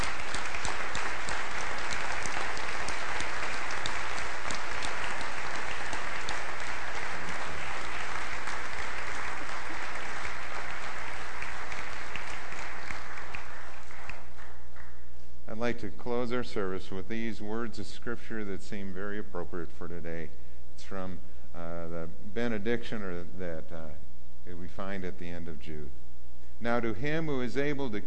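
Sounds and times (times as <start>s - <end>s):
round of applause: 0.0s - 15.2s
speech: 15.7s - 26.0s, 26.6s - 28.0s.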